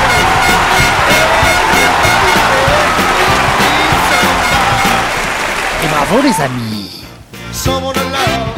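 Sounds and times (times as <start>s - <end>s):
audience cheering and whooping for a children's show performance: 0.0s - 6.8s
speech: 6.1s - 8.4s.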